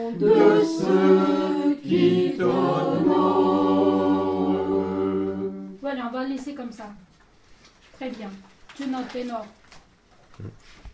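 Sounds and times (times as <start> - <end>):
ensemble performing: 0.0 - 5.8.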